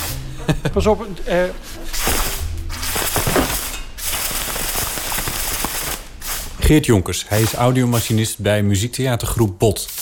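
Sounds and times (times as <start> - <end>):
laughter: 0.2 - 1.2
speech: 0.5 - 2.0, 6.7 - 10.0
compressed air escaping through thin hose: 1.6 - 6.6
thin hose whipping and slapping: 1.9 - 6.5.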